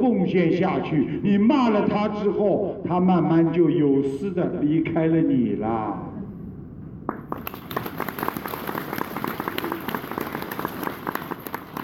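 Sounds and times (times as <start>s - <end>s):
speech: 0.0s - 6.1s
audience applause: 7.3s - 11.8s.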